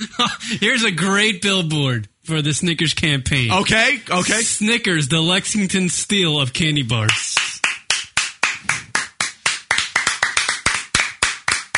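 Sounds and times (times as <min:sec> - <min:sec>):
speech: 0:00.0 - 0:07.4
round of applause: 0:07.1 - 0:11.7.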